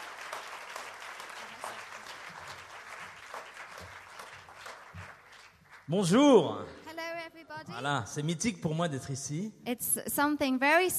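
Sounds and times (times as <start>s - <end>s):
audience applause for a guest coming on stage: 0.0s - 6.7s
speech: 5.9s - 6.8s, 7.8s - 10.9s.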